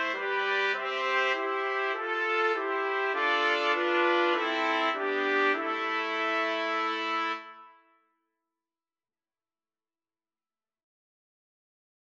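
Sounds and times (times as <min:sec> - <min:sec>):
trumpet quartet playing: 0:00.0 - 0:07.7.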